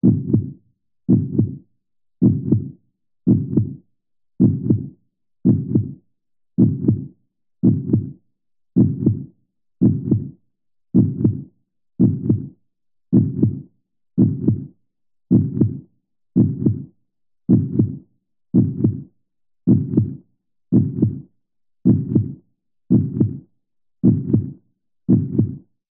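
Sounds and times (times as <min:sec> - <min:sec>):
heartbeat: 0:00.0 - 0:01.6, 0:02.2 - 0:03.8, 0:04.4 - 0:06.0, 0:06.6 - 0:08.2, 0:08.8 - 0:10.4, 0:11.0 - 0:13.6, 0:14.2 - 0:14.7, 0:15.3 - 0:15.8, 0:16.4 - 0:16.9, 0:17.5 - 0:18.0, 0:18.6 - 0:19.1, 0:19.7 - 0:23.4, 0:24.0 - 0:25.6.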